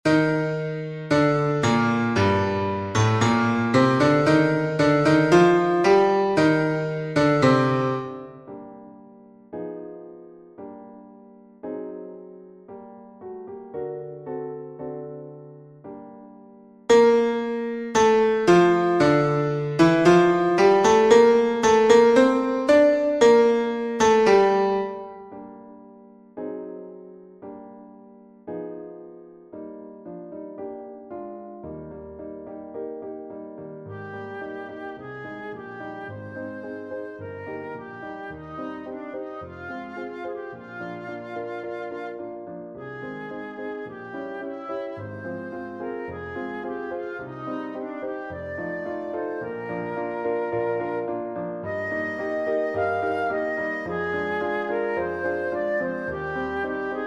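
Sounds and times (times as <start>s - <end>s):
piano: 0.0s - 57.0s
flute: 0.1s - 8.7s, 16.9s - 25.5s, 33.8s - 57.0s.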